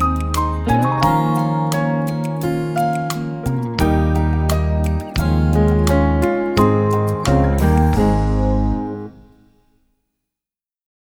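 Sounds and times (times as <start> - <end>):
percussion scale study: 0.0 - 9.4.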